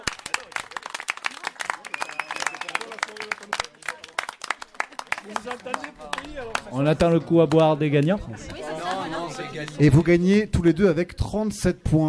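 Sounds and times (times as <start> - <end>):
crowd applause for winning teams: 0.0 - 9.8
speech: 5.3 - 12.0.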